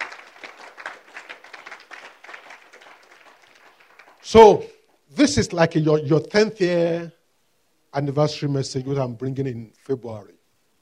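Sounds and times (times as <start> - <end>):
audience applause: 0.0 - 4.4
speech: 4.3 - 7.2, 7.9 - 10.4.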